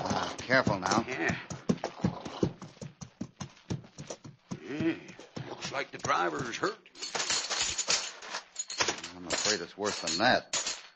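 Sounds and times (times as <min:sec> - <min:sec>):
stagecoach horses' hooves clip-clopping: 0:00.0 - 0:06.8
speech: 0:00.5 - 0:01.5, 0:05.8 - 0:06.8, 0:09.5 - 0:10.6.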